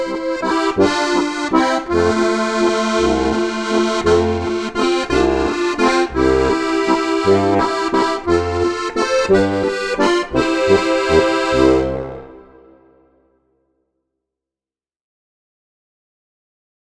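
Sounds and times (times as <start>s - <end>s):
harmonica: 0.0s - 13.0s.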